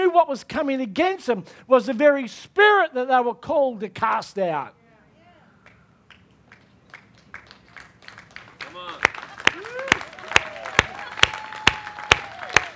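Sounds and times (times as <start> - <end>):
speech: 0.2 - 4.8
sparse applause from a small audience: 6.9 - 12.7.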